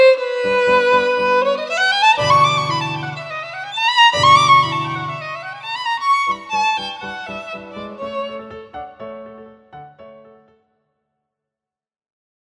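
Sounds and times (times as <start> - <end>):
classical violin: 0.0 - 9.6.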